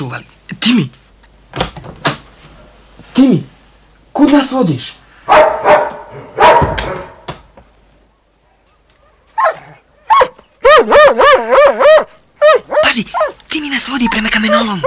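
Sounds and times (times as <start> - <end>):
speech: 0.0 - 1.7, 3.2 - 3.5, 4.2 - 5.5, 13.8 - 14.8
dog barking: 5.3 - 7.3, 8.5 - 13.4, 14.0 - 14.8
dog yelping and whining: 9.4 - 14.8.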